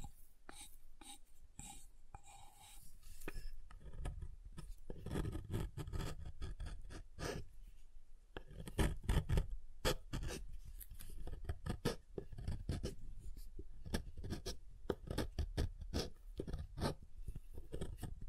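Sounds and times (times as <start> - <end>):
soap tapped and carved: 3.3 - 7.4, 8.3 - 13.0, 13.6 - 18.2.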